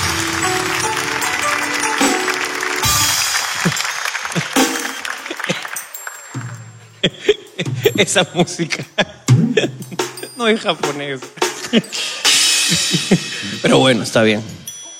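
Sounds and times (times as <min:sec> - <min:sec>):
audience applause: 0:00.0 - 0:06.7
laughter: 0:03.3 - 0:05.9, 0:06.9 - 0:10.4, 0:11.4 - 0:14.1
speech: 0:08.0 - 0:09.8, 0:10.4 - 0:12.1, 0:12.7 - 0:14.6.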